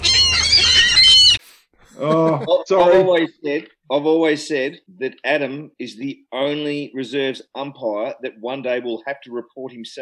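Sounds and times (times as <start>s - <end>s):
seagull squawk: 0.0s - 1.4s
speech: 2.0s - 10.0s.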